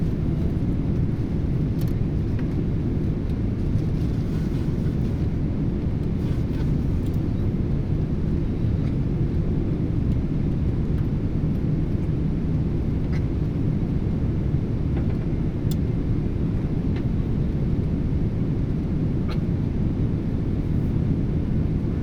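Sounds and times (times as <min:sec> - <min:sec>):
Boeing 777 inflight cabin ambience: 0:00.0 - 0:22.0.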